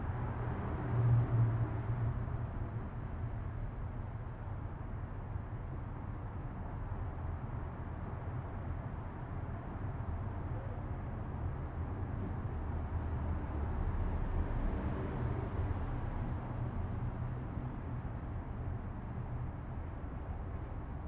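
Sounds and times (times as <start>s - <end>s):
traffic in a city tunnel under a freeway: 0.0s - 21.0s.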